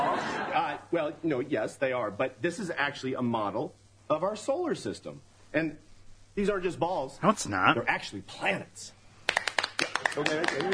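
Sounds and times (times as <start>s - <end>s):
laughter: 0.0s - 0.8s, 10.2s - 10.7s
speech: 0.9s - 9.0s, 10.1s - 10.7s
audience clapping: 9.2s - 10.7s.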